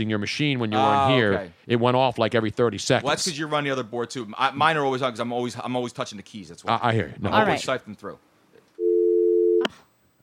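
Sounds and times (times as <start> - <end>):
speech: 0.0 - 8.3
telephone busy signal after caller hangs up: 8.8 - 9.7.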